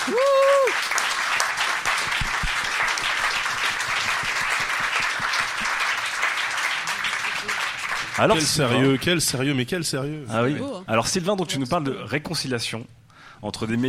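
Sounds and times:
person whooping or whistling: 0.0s - 0.8s
speech: 0.0s - 0.9s, 8.2s - 13.8s
audience applause: 0.0s - 9.1s.

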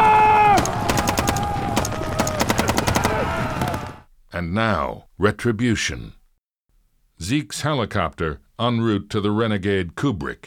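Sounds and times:
gunfire volley: 0.5s - 4.0s
speech: 4.4s - 6.2s, 7.2s - 10.4s.

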